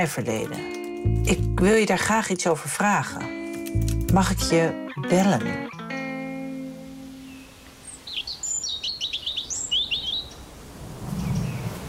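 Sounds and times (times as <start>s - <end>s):
speech: 0.0s - 5.7s
European robin chirping: 4.1s - 10.5s.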